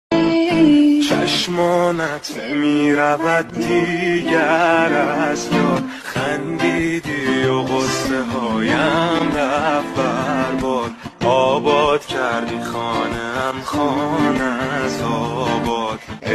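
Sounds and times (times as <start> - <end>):
guitar: 0.1 - 16.3.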